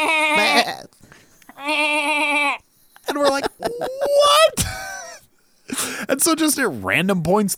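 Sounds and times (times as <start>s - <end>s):
laughter: 0.0s - 0.9s, 3.0s - 6.0s
person imitating goats bleating at a campsite: 0.0s - 4.6s
speech: 6.2s - 7.5s.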